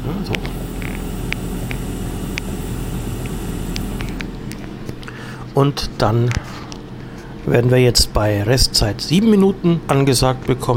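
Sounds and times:
appliance motor: 0:00.0 - 0:05.2
food sizzling in a pan: 0:00.5 - 0:04.4
speech: 0:05.6 - 0:06.7, 0:07.4 - 0:10.7.

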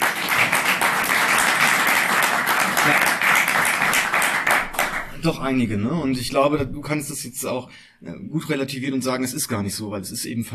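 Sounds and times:
audience applause: 0:00.0 - 0:05.1
speech: 0:05.2 - 0:10.5.

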